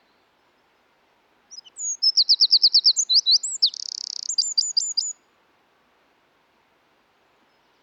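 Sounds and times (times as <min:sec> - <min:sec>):
Eurasian wren singing: 0:01.5 - 0:05.2.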